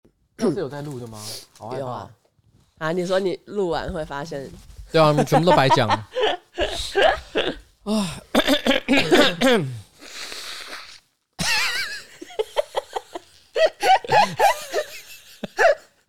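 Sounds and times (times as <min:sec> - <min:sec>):
speech: 0:00.4 - 0:02.2, 0:02.8 - 0:09.8
laughter: 0:05.0 - 0:07.5, 0:11.4 - 0:15.7
person coughing: 0:06.2 - 0:09.9, 0:13.6 - 0:14.6.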